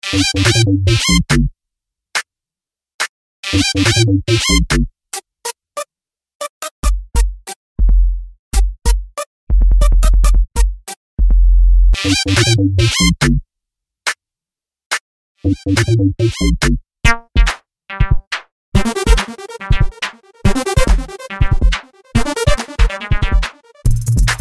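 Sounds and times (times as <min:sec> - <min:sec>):
two-step bassline: 0:00.1 - 0:01.5, 0:03.6 - 0:04.9, 0:06.8 - 0:13.4, 0:15.5 - 0:24.3.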